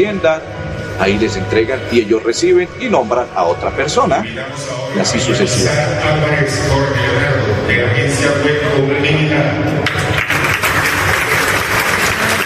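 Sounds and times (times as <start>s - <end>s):
speech: 0.0s - 10.1s
audience applauding: 9.8s - 12.4s.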